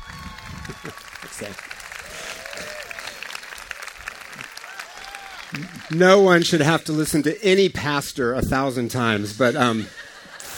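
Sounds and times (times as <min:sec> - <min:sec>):
congregation applauding in church to welcome a pastor: 0:00.0 - 0:07.2
speech: 0:00.8 - 0:01.7, 0:05.9 - 0:10.0
laughter: 0:05.5 - 0:06.0, 0:09.4 - 0:10.5.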